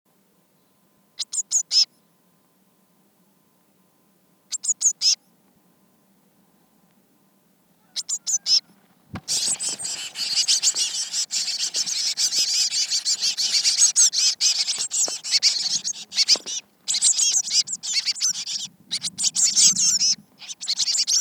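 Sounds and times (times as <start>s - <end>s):
Eurasian blue tit Cyanistes caeruleus churring: 8.0s - 21.1s.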